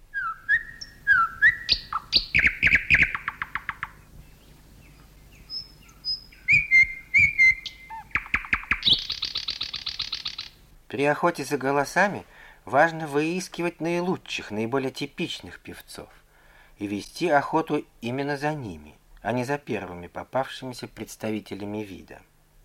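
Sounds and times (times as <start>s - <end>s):
nightingale singing: 0.0s - 10.7s
speech: 11.0s - 16.2s, 16.8s - 22.3s.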